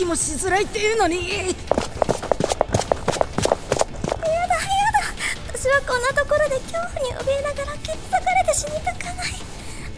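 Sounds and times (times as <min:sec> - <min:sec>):
speech: 0:00.0 - 0:02.3, 0:05.8 - 0:09.5
footsteps of several people running toward an elevator: 0:01.5 - 0:04.2.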